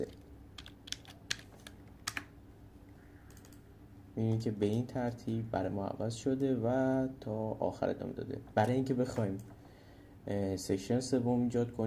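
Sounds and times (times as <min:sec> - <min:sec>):
speech: 0:00.0 - 0:00.2, 0:04.2 - 0:09.6, 0:10.3 - 0:11.8
computer keyboard typing: 0:00.0 - 0:02.3, 0:03.3 - 0:03.6.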